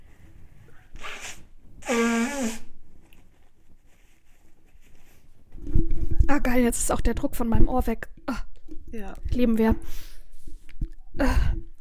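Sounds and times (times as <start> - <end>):
nose blowing: 0.7 - 2.8
speech: 6.4 - 10.1, 11.2 - 11.7.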